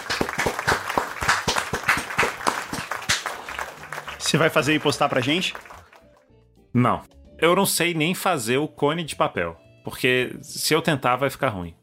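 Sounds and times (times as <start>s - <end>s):
applause: 0.0s - 6.3s
speech: 4.3s - 5.7s, 6.8s - 11.8s.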